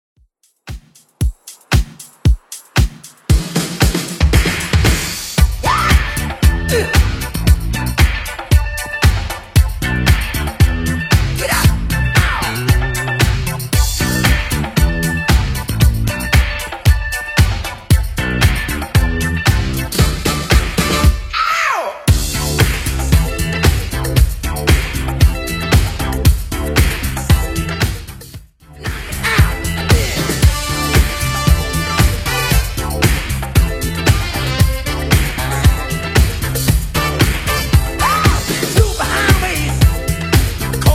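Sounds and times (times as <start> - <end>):
80s Redrum drum machine beat: 0.2 - 21.2, 22.1 - 40.9.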